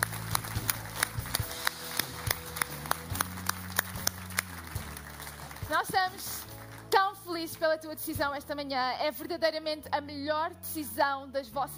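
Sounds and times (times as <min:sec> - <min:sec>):
audience applause: 0:00.0 - 0:06.9
speech: 0:05.9 - 0:06.4, 0:07.4 - 0:11.7.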